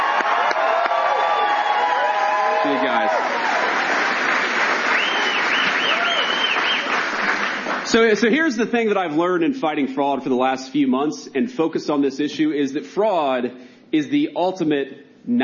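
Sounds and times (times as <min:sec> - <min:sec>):
audience applause: 0:00.0 - 0:08.1
speech: 0:07.9 - 0:15.4.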